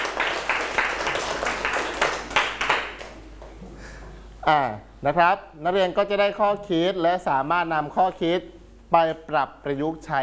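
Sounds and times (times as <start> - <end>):
classroom students clapping: 0.0 - 3.5
speech: 4.5 - 10.2.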